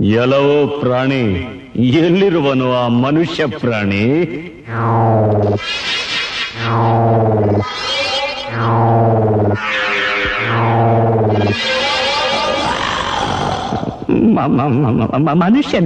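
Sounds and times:
speech: 0:00.0 - 0:06.0, 0:06.6 - 0:11.9, 0:13.7 - 0:15.8
person imitating tiger roars with heavy effects and echo: 0:07.4 - 0:14.3.

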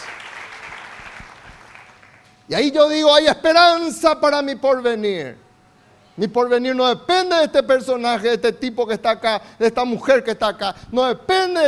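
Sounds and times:
audience applause: 0:00.0 - 0:02.2
speech: 0:02.5 - 0:05.4, 0:06.2 - 0:11.6.

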